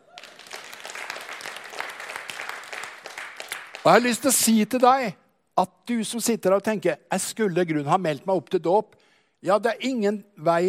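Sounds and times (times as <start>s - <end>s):
audience applause: 0.0s - 4.2s
speech: 3.8s - 10.6s.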